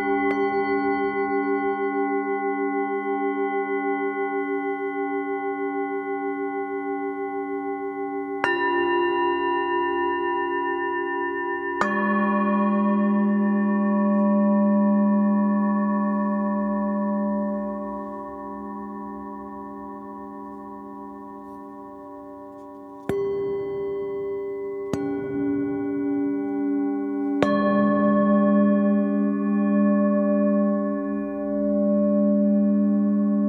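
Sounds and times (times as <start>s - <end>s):
bells pad: 0.0s - 33.4s.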